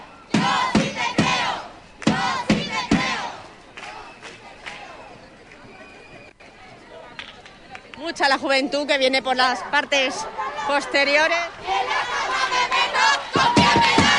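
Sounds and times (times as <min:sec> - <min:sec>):
crowd chanting slogans for equality and freedom: 0:00.0 - 0:05.1, 0:09.6 - 0:14.1
murmur of voices and scattered calls: 0:00.0 - 0:14.1
speech: 0:08.2 - 0:11.8.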